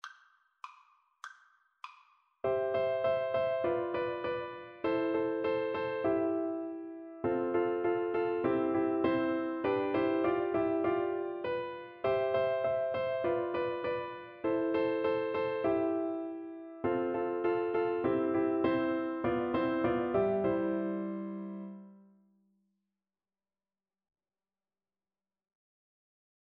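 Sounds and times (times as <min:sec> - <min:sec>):
piano duet: 0:02.4 - 0:22.1.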